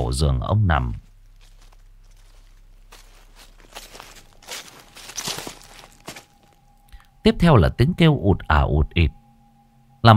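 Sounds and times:
speech: 0.1 - 1.0, 7.2 - 9.2
rustling footsteps at night in the garden behind a house: 0.8 - 6.8.

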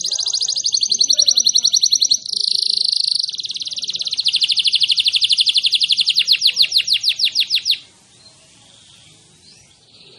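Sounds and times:
canary song: 0.0 - 10.1.

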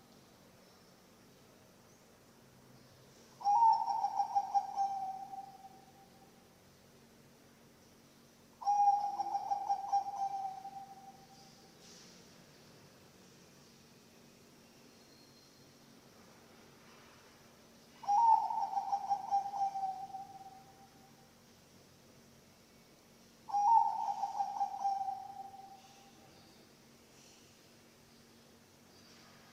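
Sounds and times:
zebra dove song: 3.4 - 5.8, 8.6 - 11.2, 18.0 - 20.6, 23.5 - 26.0.

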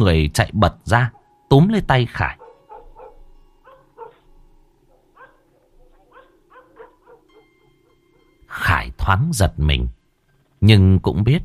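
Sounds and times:
speech: 0.0 - 2.4, 8.6 - 10.0, 10.6 - 11.4
dog barking loudly: 2.4 - 4.3, 4.9 - 7.5.

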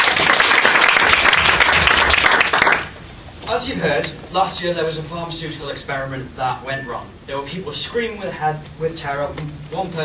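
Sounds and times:
audience applause: 0.0 - 2.9
speech: 3.6 - 10.0.

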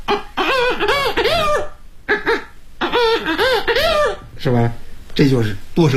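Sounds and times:
vocal mimicry performer imitating hen clucks and rooster calls with circular breathing: 0.0 - 4.3
speech: 4.4 - 5.9.

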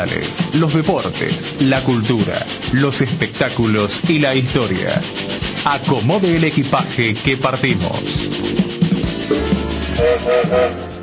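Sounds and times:
speech: 0.0 - 8.6, 9.3 - 10.9
train whistle blasts: 9.9 - 11.0.

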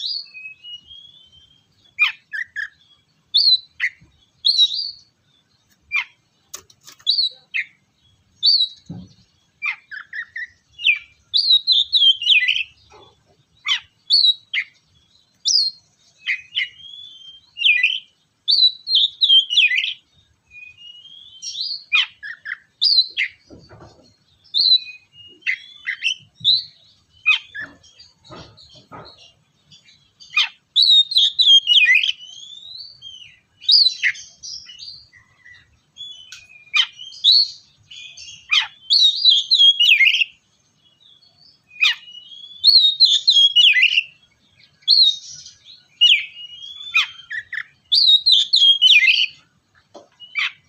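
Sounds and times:
Oriental magpie-robin song: 0.0 - 6.2, 6.8 - 23.5, 24.3 - 50.6.

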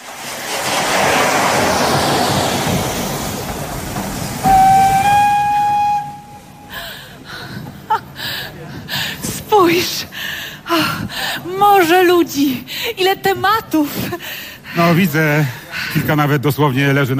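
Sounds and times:
train hissing at a station: 0.0 - 11.5
station voices and bustle: 0.1 - 17.1
train whistle at a station: 4.4 - 6.8
speech: 12.4 - 17.1.

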